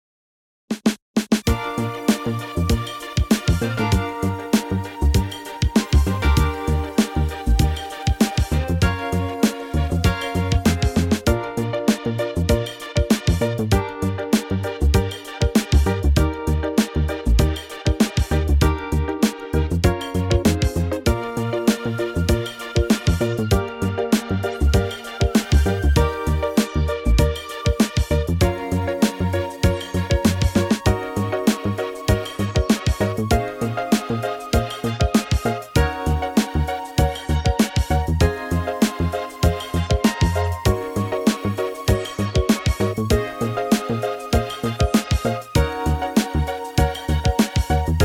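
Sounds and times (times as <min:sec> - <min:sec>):
B-flat backing track for male vocals: 0:01.3 - 0:48.0.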